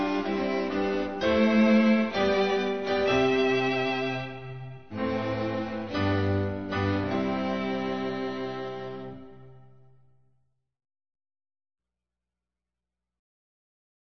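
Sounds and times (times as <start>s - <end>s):
instrumental music: 0.0s - 10.0s.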